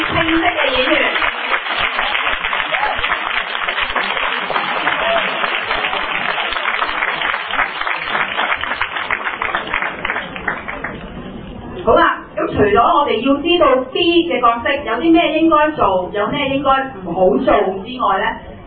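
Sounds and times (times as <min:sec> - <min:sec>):
audience applause: 0:00.0 - 0:11.1
speech: 0:00.1 - 0:01.0, 0:12.6 - 0:18.4.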